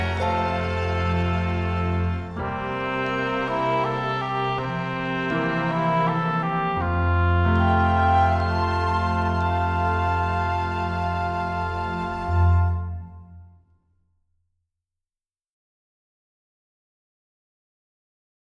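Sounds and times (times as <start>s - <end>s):
distant melody: 0.0s - 13.7s.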